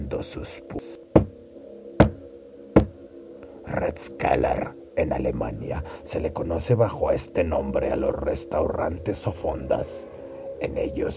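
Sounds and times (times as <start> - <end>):
speech: 0.1 - 1.1, 3.7 - 11.1
knocking on a wall in an old German restaurant: 1.2 - 1.4, 2.0 - 2.2, 2.8 - 3.0.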